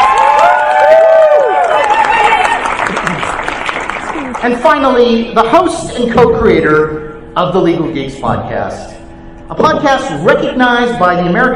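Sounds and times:
crowd whooping: 0:00.0 - 0:03.4
crowd applauding: 0:00.0 - 0:04.9
speech: 0:04.4 - 0:11.5.

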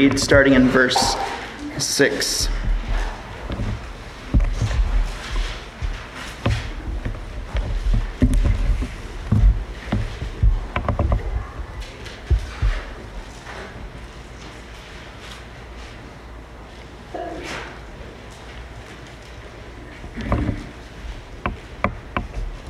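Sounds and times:
speech: 0:00.0 - 0:02.6
bible pages turning: 0:02.7 - 0:13.6.

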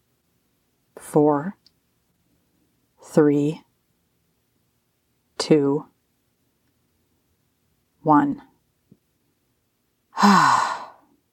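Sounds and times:
speech: 0:01.0 - 0:01.6, 0:03.0 - 0:03.6, 0:05.5 - 0:05.9, 0:08.0 - 0:08.5, 0:10.2 - 0:10.6
person breathing out with a voiced sigh during a grounding exercise: 0:10.2 - 0:11.0.

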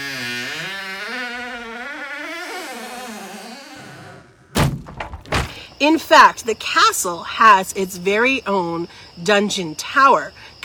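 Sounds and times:
heavy medieval dungeon door creaking open: 0:00.9 - 0:05.7
wooden thud: 0:04.6 - 0:05.6
speech: 0:05.8 - 0:10.6.

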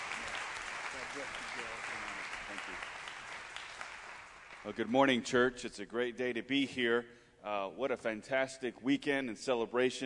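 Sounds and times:
church congregation applauding a guest preacher: 0:00.0 - 0:05.4
speech: 0:01.2 - 0:03.0, 0:04.6 - 0:10.0.

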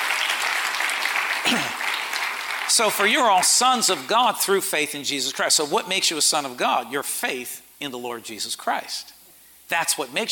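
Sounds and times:
audience clapping: 0:00.0 - 0:04.1
speech: 0:02.7 - 0:10.3.

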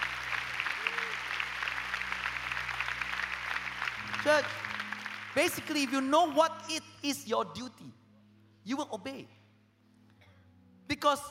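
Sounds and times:
audience applause: 0:00.0 - 0:06.4
speech: 0:04.2 - 0:04.6, 0:05.3 - 0:08.0, 0:08.7 - 0:09.4, 0:11.0 - 0:11.2.

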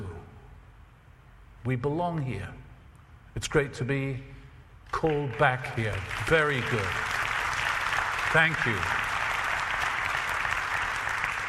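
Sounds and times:
speech: 0:01.6 - 0:02.6, 0:03.4 - 0:07.2, 0:08.3 - 0:09.0
audience applauding: 0:05.0 - 0:11.4.

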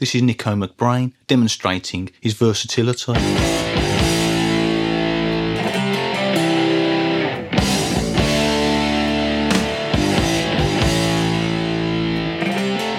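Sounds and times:
speech: 0:00.0 - 0:03.8
meaty guitar: 0:03.1 - 0:12.9.

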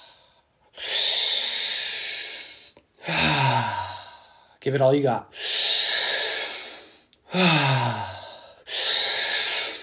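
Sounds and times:
deep breathing in guided breathwork for sexual energy activation: 0:00.0 - 0:04.6, 0:05.3 - 0:09.8
speech: 0:04.6 - 0:05.5.

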